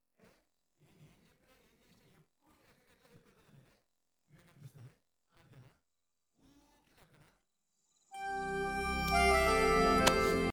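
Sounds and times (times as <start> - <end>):
happy instrumental music: 8.2 - 10.5.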